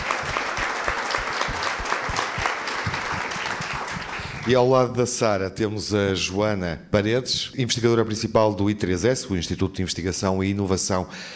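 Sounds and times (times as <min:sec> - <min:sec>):
audience applause: 0:00.0 - 0:04.8
speech: 0:04.5 - 0:11.3.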